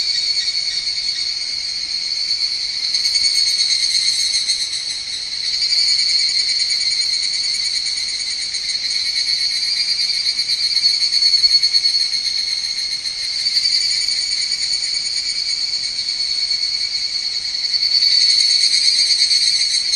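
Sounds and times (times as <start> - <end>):
Higurashi cicada call with high metallic trill: 0.0 - 19.9.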